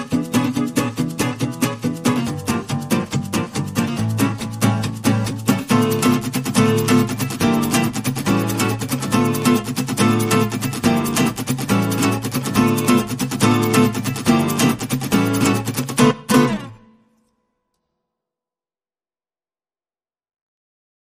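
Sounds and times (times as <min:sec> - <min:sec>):
jazz club rhythm guitars: 0:00.0 - 0:16.9.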